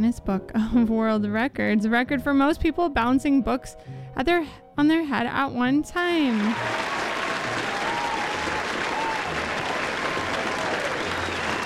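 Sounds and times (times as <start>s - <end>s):
speech: 0.0s - 7.0s
crowd applause: 6.3s - 11.6s.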